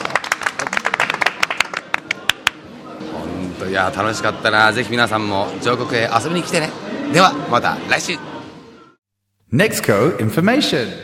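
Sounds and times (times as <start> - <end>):
audience clapping: 0.0 - 2.6
speech: 3.6 - 8.3, 9.5 - 11.0.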